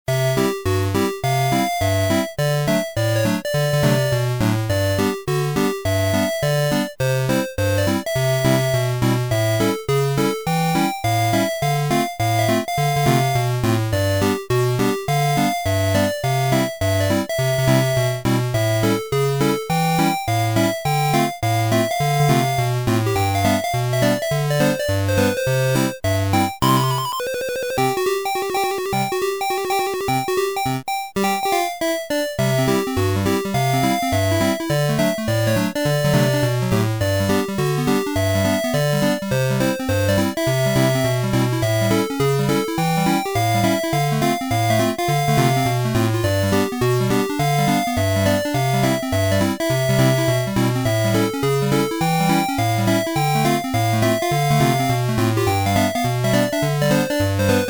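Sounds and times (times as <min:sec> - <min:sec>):
dice music: 0:00.1 - 0:57.6.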